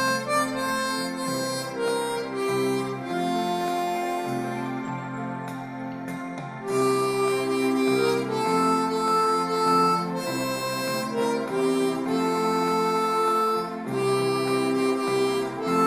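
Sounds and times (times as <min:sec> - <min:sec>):
harmonica playing a Christmas carol in F: 0:00.0 - 0:05.9, 0:06.6 - 0:15.8.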